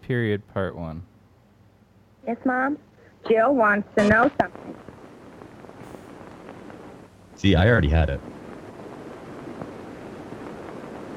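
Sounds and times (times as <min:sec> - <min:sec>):
speech: 0:00.1 - 0:01.1, 0:02.2 - 0:04.9, 0:07.4 - 0:08.3
rain-like pattering: 0:03.5 - 0:11.1.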